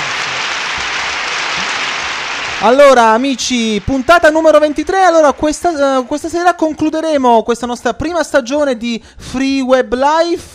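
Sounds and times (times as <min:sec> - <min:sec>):
audience applause for a guest: 0:00.0 - 0:05.4
speech: 0:02.6 - 0:10.5.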